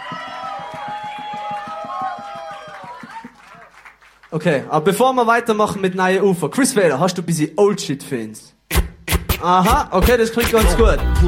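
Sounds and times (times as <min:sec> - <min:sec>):
audience cheering: 0:00.0 - 0:04.0
audience rhythmic clapping or stomping: 0:00.0 - 0:04.3, 0:08.7 - 0:11.2
speech: 0:04.3 - 0:08.6, 0:09.4 - 0:11.2.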